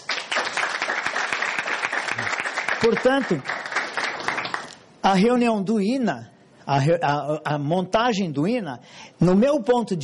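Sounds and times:
audience applause: 0.0s - 4.8s
speech: 2.8s - 3.6s, 5.0s - 10.0s.

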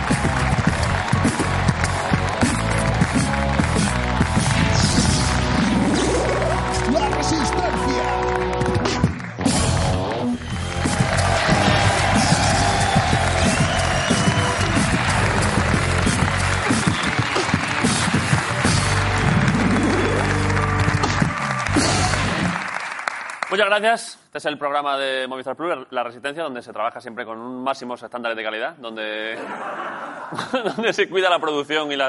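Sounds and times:
audience applause: 0.0s - 23.8s
speech: 23.8s - 32.0s
laughter: 29.3s - 31.1s.

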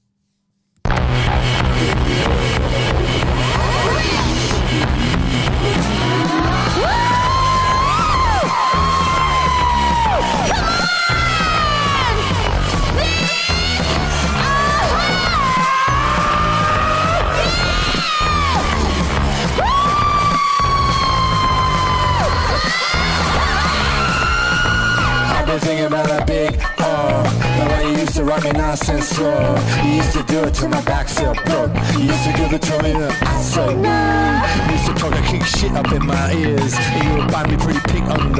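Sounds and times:
raucous rock band playing a hip-hop cover: 0.9s - 38.3s
loud shouted vocals: 5.6s - 25.7s, 33.2s - 35.2s.

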